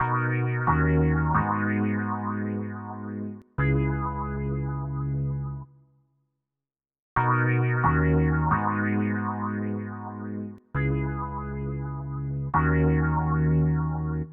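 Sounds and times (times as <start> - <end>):
electric piano loop: 0.0 - 4.7, 7.3 - 14.3.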